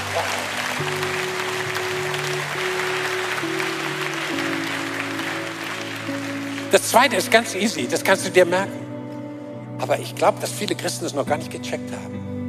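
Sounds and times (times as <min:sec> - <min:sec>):
crowd applause: 0:00.0 - 0:08.1
keyboard chords: 0:00.0 - 0:12.4
speech: 0:06.7 - 0:08.8, 0:09.8 - 0:12.3.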